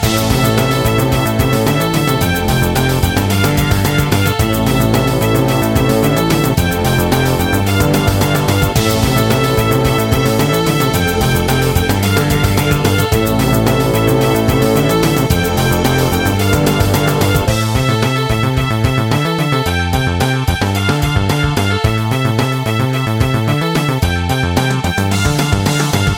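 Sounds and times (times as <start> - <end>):
arcade space shooter game music loop: 0.0 - 26.1.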